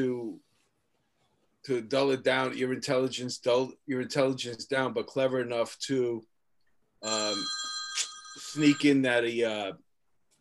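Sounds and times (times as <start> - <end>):
speech: 0.0 - 0.2, 1.6 - 6.3, 7.0 - 9.8
mobile phone ringtone: 7.0 - 9.2.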